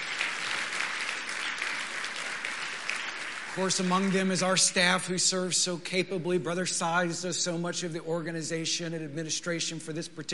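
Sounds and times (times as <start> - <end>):
audience applause: 0.0 - 4.6
speech: 3.6 - 10.3.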